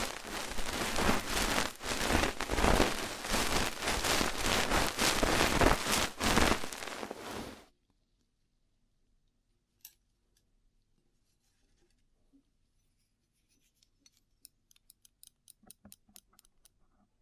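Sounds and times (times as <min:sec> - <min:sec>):
rough ear cleaning scraping and rustling: 0:00.0 - 0:07.6.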